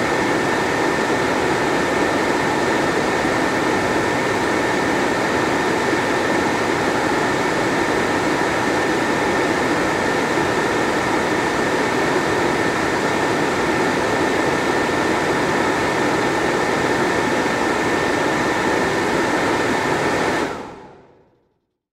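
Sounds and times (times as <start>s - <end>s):
fan air machine switching on, running and off: 0.0s - 21.6s.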